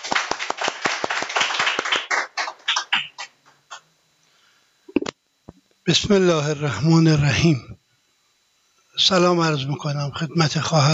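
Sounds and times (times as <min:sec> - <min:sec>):
audience applause: 0:00.0 - 0:03.3
speech: 0:05.9 - 0:07.8, 0:09.0 - 0:10.9.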